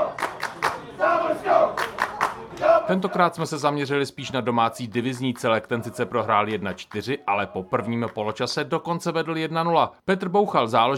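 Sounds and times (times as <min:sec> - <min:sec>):
visiting football fans chanting: 0:00.0 - 0:03.6, 0:04.2 - 0:08.2
speech: 0:02.9 - 0:10.9.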